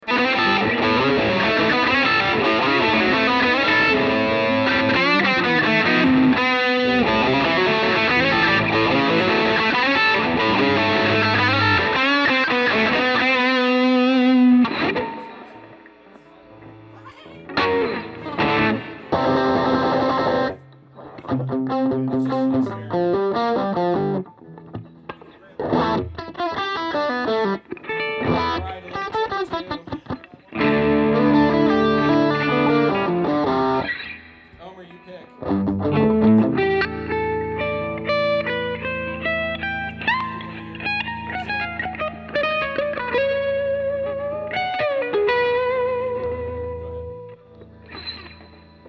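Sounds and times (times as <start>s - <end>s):
guitars mix: 0.0s - 48.8s.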